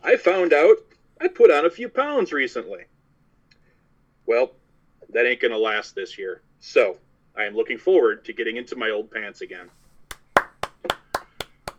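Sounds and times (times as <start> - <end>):
speech: 0.2 - 3.0, 4.3 - 9.8
one person's hand claps: 10.1 - 11.7.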